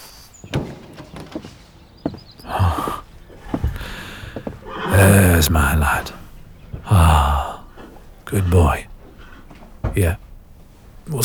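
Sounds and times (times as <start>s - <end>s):
dull thumps and shuffling: 0.4s - 11.2s
horse snorting and blowing: 2.4s - 11.2s
speech: 5.4s - 6.2s, 8.3s - 8.9s, 10.0s - 10.2s, 11.1s - 11.2s.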